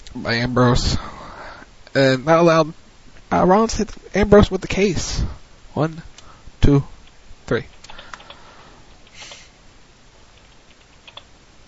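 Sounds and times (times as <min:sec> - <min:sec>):
speech: 0:00.2 - 0:01.2, 0:02.0 - 0:06.9, 0:07.5 - 0:07.7
typing on a computer keyboard: 0:07.0 - 0:08.4, 0:10.3 - 0:11.3.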